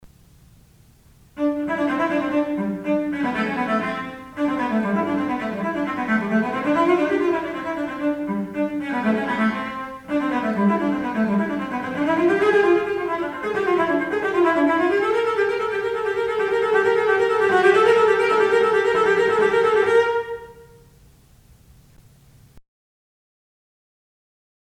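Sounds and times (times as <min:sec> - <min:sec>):
cello: 0:01.4 - 0:20.9.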